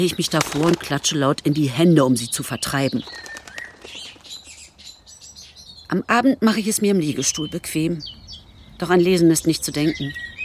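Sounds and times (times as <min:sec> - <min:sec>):
pigeons flapping wings: 0:00.0 - 0:01.3, 0:02.9 - 0:04.6
speech: 0:00.0 - 0:04.0, 0:05.9 - 0:08.2, 0:08.8 - 0:10.2
thin high bird chirps and tweets: 0:01.0 - 0:10.4.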